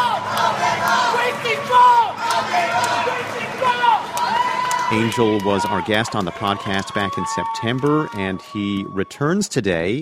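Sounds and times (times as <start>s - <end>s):
crowd cheer at campaign event: 0.0s - 9.5s
person leading a cheer: 1.1s - 9.4s
speech: 4.9s - 10.0s.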